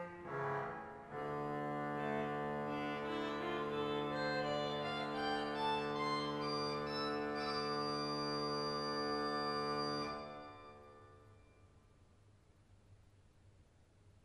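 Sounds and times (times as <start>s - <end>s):
krummhorn: 0.1s - 11.0s.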